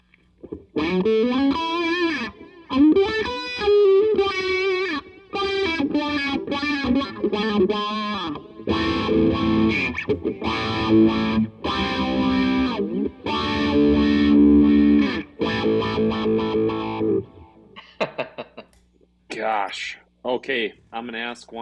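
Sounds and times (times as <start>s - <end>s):
electric guitar played through a wah pedal: 0.4s - 17.8s
speech: 0.9s - 1.7s, 9.7s - 12.2s, 20.5s - 21.6s.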